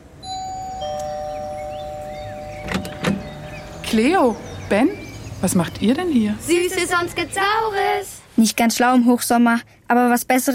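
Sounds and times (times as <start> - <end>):
doorbell two-note ding-dong chime: 0.2 - 3.6
short sharp clattering noises: 2.6 - 3.4
speech: 3.9 - 10.5.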